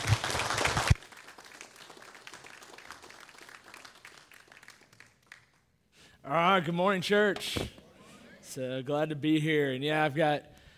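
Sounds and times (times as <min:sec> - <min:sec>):
church congregation applause welcoming a guest speaker: 0:00.0 - 0:05.6
speech: 0:06.3 - 0:07.8, 0:08.5 - 0:10.5.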